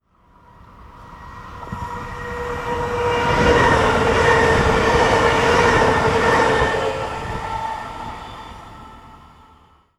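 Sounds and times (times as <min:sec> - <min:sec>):
diesel and electric trains: 0:00.0 - 0:09.9.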